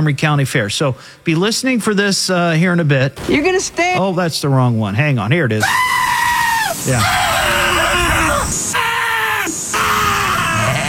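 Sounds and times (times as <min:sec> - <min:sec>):
speech: 0:00.0 - 0:06.1, 0:06.8 - 0:07.8
sheep screaming: 0:05.6 - 0:10.8.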